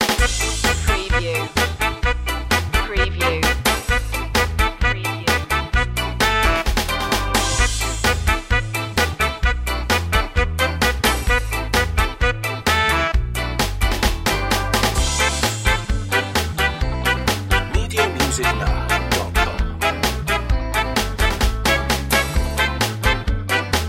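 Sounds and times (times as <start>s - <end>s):
ska music in A minor: 0.0s - 23.8s.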